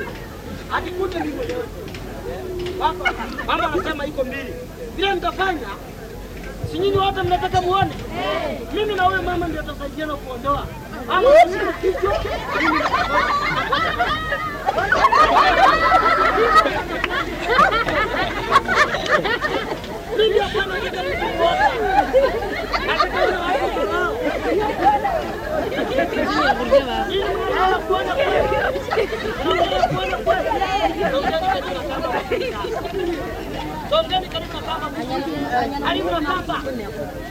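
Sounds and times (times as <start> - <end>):
laughter: 0.0 - 37.3
market ambience in Kakamega Kenya: 0.0 - 37.3.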